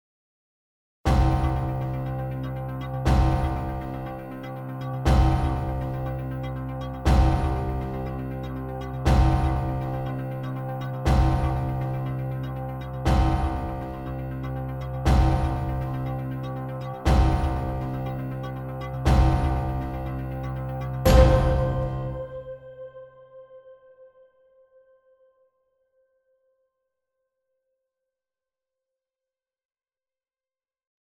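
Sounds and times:
musical countdown with hits: 0:01.1 - 0:22.7.

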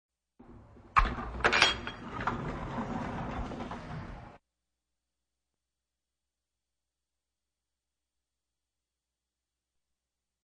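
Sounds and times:
door sliding on runners: 0:00.4 - 0:04.4
metal latch opening: 0:01.0 - 0:02.1.

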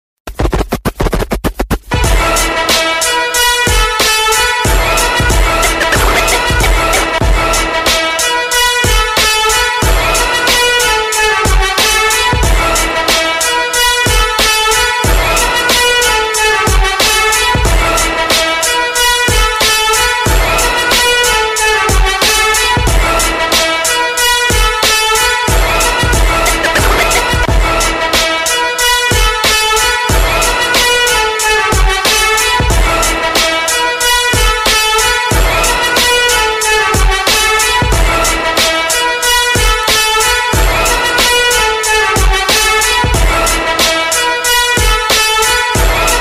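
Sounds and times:
hip hop music: 0:00.3 - 0:46.1.

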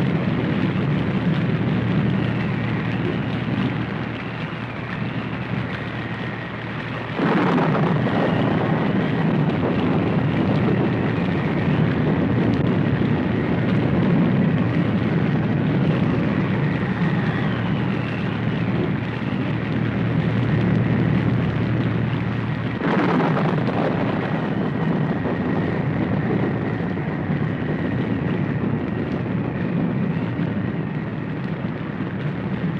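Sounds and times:
rain: 0:00.0 - 0:32.7
strong wind: 0:00.0 - 0:32.7
thunder: 0:07.2 - 0:10.0, 0:22.8 - 0:25.9.

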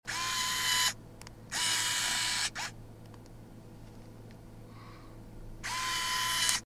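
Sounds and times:
camera zoom motor: 0:00.1 - 0:02.8, 0:05.6 - 0:06.6.

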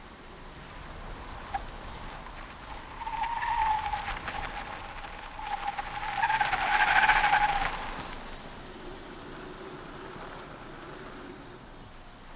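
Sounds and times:
car drifting: 0:00.0 - 0:12.3.

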